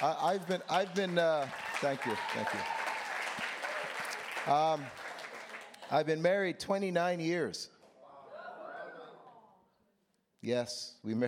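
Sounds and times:
speech: 0.0 - 2.8, 4.4 - 5.0, 5.9 - 7.8, 10.4 - 11.2
few people clapping: 0.0 - 6.2.

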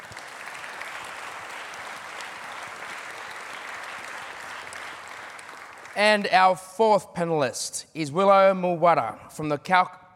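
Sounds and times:
audience applause welcoming a panellist: 0.0 - 6.2
speech: 6.0 - 10.1.

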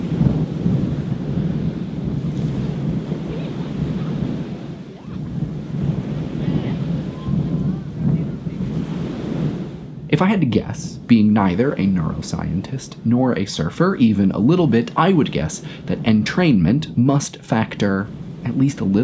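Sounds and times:
ocean waves crashing on beach: 0.0 - 19.0
speech: 10.2 - 19.0.

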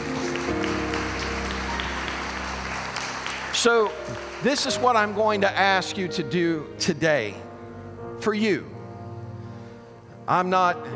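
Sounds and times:
audience clapping: 0.0 - 5.7
speech: 3.6 - 7.4, 8.2 - 8.7, 10.3 - 10.9.

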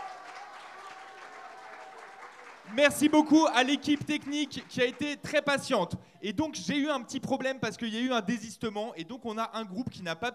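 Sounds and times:
audience applause: 0.0 - 5.2
speech: 2.7 - 10.3.

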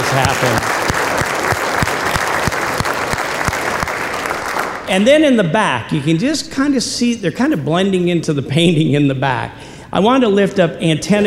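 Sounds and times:
audience applause: 0.0 - 4.9
speech: 0.1 - 1.4, 4.9 - 11.2.

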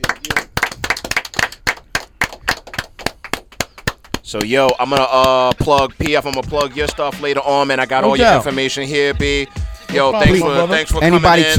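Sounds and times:
studio applause: 0.0 - 5.1
speech: 4.3 - 11.5.

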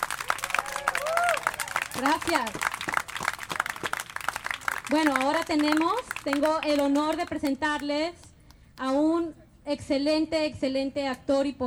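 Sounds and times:
audience applause: 0.0 - 7.6
speech: 2.0 - 3.0, 4.9 - 8.2, 8.8 - 11.6.

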